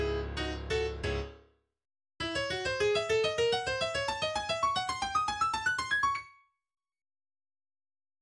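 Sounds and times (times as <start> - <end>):
piano exercise: 0.0 - 1.6, 2.2 - 6.5.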